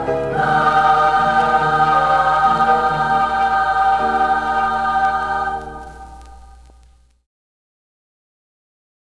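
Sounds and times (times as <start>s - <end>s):
chorus singing a Spanish ballad: 0.0s - 6.6s.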